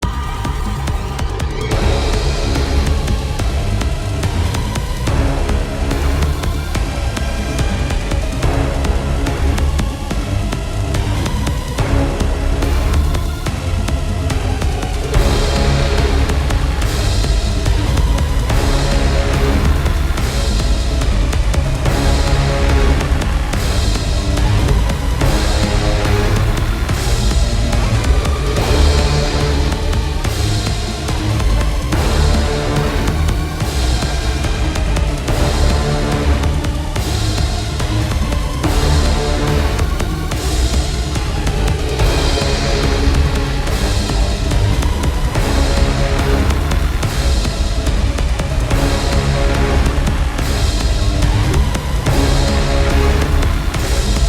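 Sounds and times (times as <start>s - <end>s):
tension music: 0.0s - 54.2s.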